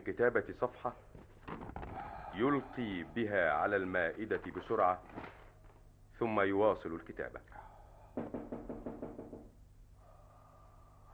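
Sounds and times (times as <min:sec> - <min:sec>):
speech: 0:00.0 - 0:01.2, 0:02.4 - 0:05.3, 0:06.2 - 0:07.6, 0:08.2 - 0:08.4
character knocking on a poet's door in a dramatized scene: 0:08.2 - 0:09.6.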